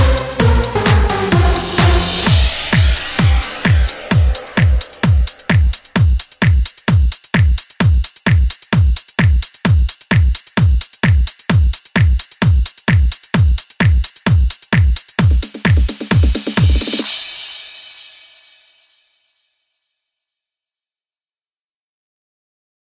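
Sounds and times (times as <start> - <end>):
pop EDM anthems: 0.0 - 17.5.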